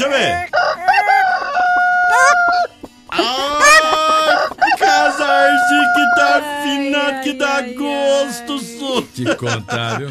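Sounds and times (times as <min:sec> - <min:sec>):
speech: 0:00.0 - 0:00.6, 0:07.1 - 0:10.0
chickens clucking and squawking in a henhouse: 0:00.4 - 0:06.6
rooster crowing in a henhouse: 0:00.5 - 0:02.7, 0:03.5 - 0:06.4
laughter: 0:03.1 - 0:10.0.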